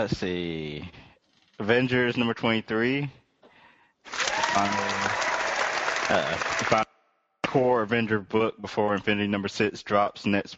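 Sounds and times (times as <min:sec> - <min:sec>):
speech: 0:00.0 - 0:01.0, 0:01.6 - 0:03.2, 0:04.0 - 0:05.3, 0:06.1 - 0:06.9, 0:07.5 - 0:10.5
hands clapping with excitement: 0:04.1 - 0:06.8.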